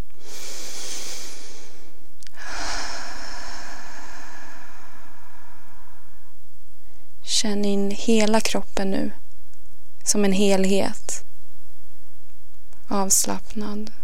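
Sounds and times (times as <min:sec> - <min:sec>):
deep breath in through the nose and out through the mouth during a guided relaxation exercise: 0:00.1 - 0:07.2
speech: 0:07.4 - 0:09.2, 0:10.1 - 0:11.1, 0:12.9 - 0:14.0.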